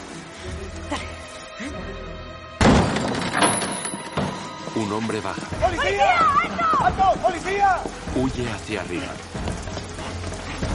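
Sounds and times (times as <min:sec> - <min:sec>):
door being kicked in: 0:02.6 - 0:04.4
speech: 0:04.8 - 0:09.4.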